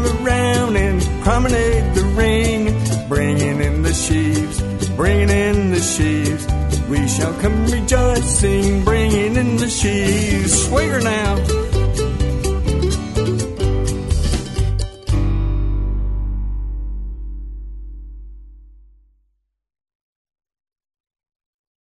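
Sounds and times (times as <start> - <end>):
person singing: 0.0 - 12.0
square dance music: 0.0 - 16.4.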